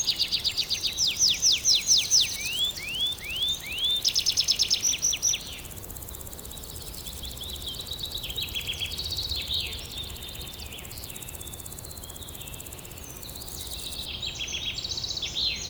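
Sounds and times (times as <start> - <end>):
countryside ambience: 0.0 - 15.6.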